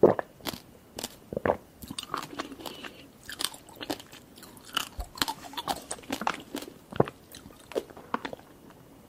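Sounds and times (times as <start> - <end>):
person chewing jelly: 0.4 - 1.2, 1.8 - 8.5
person drinking milk tea: 1.5 - 8.4.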